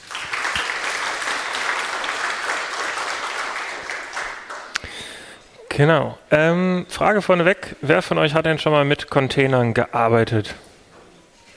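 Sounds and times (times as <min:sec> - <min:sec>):
audience applause: 0:00.0 - 0:05.3
speech: 0:05.8 - 0:10.6.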